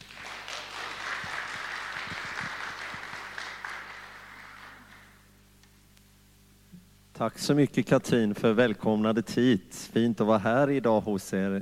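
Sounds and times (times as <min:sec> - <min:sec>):
warm audience applause: 0:00.0 - 0:05.3
speech: 0:07.2 - 0:11.5.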